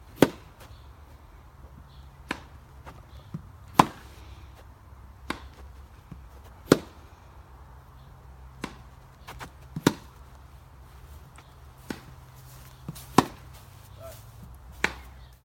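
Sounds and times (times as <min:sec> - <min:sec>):
tennis rally on a grass court: 0:00.2 - 0:00.4, 0:02.2 - 0:02.6, 0:03.2 - 0:04.2, 0:05.2 - 0:07.0, 0:08.5 - 0:10.2, 0:11.8 - 0:12.2, 0:12.8 - 0:13.5, 0:14.8 - 0:15.2.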